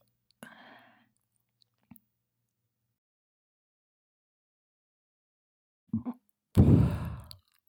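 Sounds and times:
person burping ASMR: 0:06.0 - 0:07.4.

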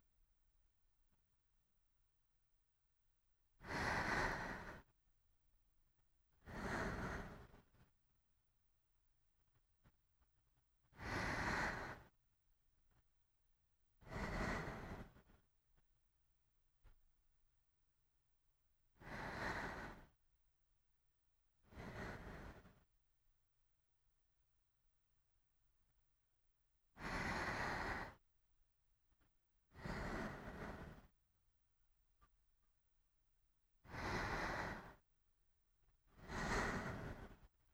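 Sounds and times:
sleeping breath: 0:03.6 - 0:04.9, 0:06.4 - 0:07.9, 0:10.9 - 0:12.2, 0:14.0 - 0:15.4, 0:19.0 - 0:20.2, 0:21.6 - 0:22.9, 0:27.0 - 0:28.2, 0:29.7 - 0:31.2, 0:33.8 - 0:35.1, 0:36.1 - 0:37.6.

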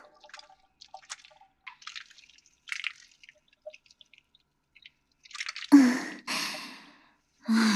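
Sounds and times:
shampoo lathering and scrubbing hair: 0:00.0 - 0:05.8.

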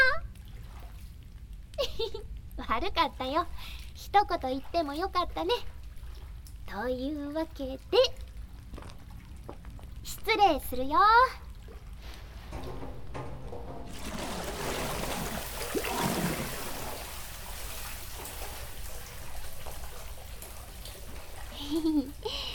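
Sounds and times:
speech: 0:02.0 - 0:05.8, 0:06.7 - 0:08.2, 0:10.2 - 0:11.4, 0:21.7 - 0:22.5
hot bath water overflowing as two people climb into the tub: 0:12.5 - 0:22.5.

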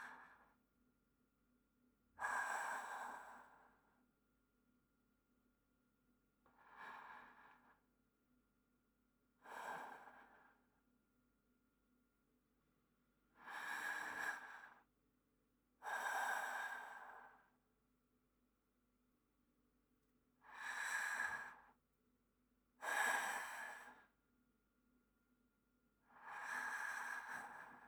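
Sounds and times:
person breathing in sleep: 0:02.2 - 0:04.0, 0:06.5 - 0:07.8, 0:09.4 - 0:10.6, 0:13.4 - 0:14.9, 0:15.8 - 0:17.6, 0:20.4 - 0:21.8, 0:22.8 - 0:24.1, 0:26.1 - 0:27.8.

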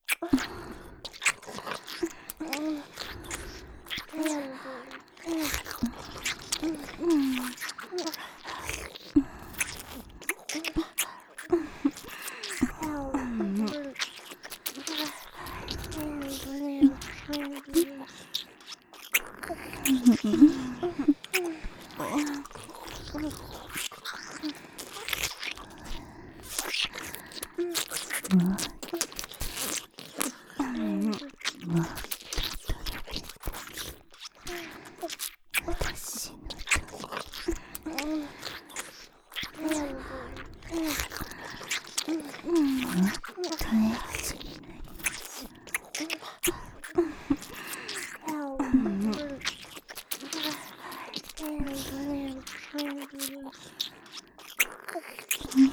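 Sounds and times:
ear licking in the right ear: 0:00.0 - 0:55.7
oral sex sounds: 0:00.2 - 0:55.7
breathing in the left ear: 0:00.4 - 0:23.6, 0:36.2 - 0:49.5, 0:50.3 - 0:51.2, 0:53.5 - 0:54.5.

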